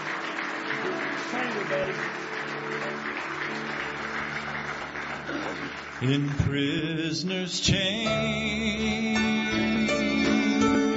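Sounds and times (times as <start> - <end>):
audience clapping hands in praise: 0.0 - 7.2
speech: 1.3 - 3.8, 5.3 - 10.8.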